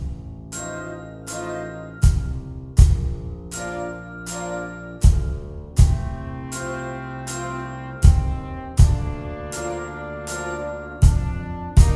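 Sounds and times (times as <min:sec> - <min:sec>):
glockenspiel playing at practice tempo: 0:00.5 - 0:02.5, 0:03.5 - 0:08.3, 0:09.5 - 0:11.9.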